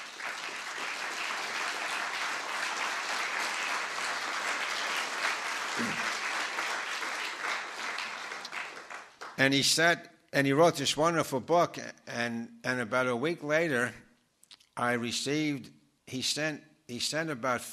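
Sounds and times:
audience applause: 0.0 - 9.4
speech: 9.4 - 14.0, 14.8 - 17.7.

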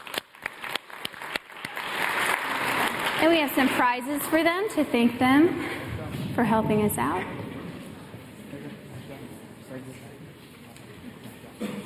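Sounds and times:
audience applause for contestants: 0.0 - 4.2
speech: 3.2 - 7.4, 9.8 - 10.2.

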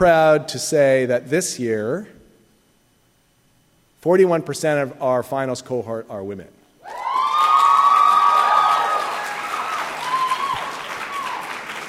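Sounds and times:
speech: 0.0 - 2.2, 4.0 - 7.0
high-pitched yell: 6.8 - 11.5
crowd applause and cheering: 6.8 - 11.8.

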